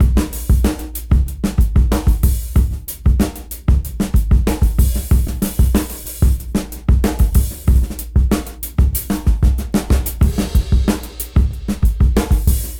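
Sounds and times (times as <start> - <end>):
busy drum break: 0.0 - 12.7.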